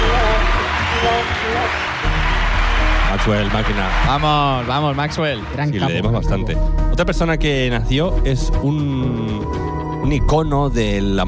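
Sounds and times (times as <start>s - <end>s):
loud applause: 0.0s - 5.8s
speech: 3.1s - 11.2s.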